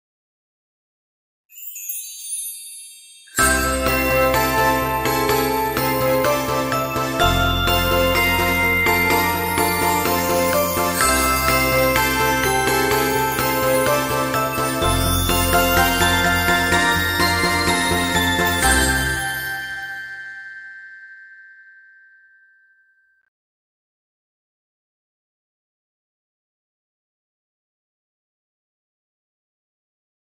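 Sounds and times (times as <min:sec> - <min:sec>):
Christmas song ringtone: 0:01.5 - 0:23.3.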